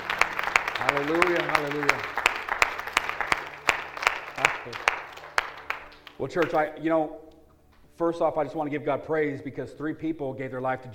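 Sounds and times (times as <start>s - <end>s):
audience clapping: 0.0s - 6.8s
speech: 0.8s - 2.2s, 4.7s - 5.0s, 6.2s - 7.3s, 8.0s - 10.9s.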